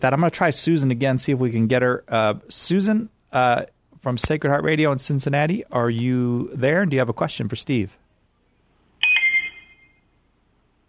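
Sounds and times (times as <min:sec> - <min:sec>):
speech: 0:00.0 - 0:08.0
electronic chime on phone line: 0:09.0 - 0:10.2.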